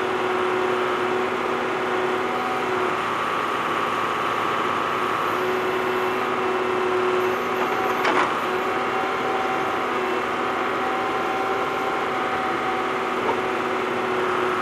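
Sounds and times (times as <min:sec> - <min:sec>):
ambient construction noise: 0:00.0 - 0:14.5.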